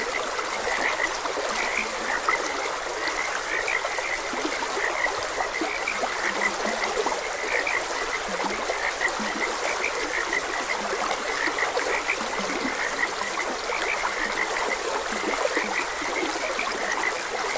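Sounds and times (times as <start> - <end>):
frogs croaking: 0.0 - 17.5
running water: 0.0 - 17.5.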